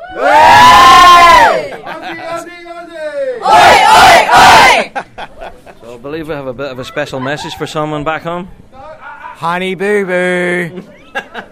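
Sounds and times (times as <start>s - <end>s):
crowd cheering: 0.0s - 2.4s, 3.4s - 5.0s
speech: 0.1s - 0.4s, 6.2s - 8.7s, 9.4s - 11.0s
laughter: 1.5s - 2.5s, 4.7s - 6.0s, 10.7s - 11.5s.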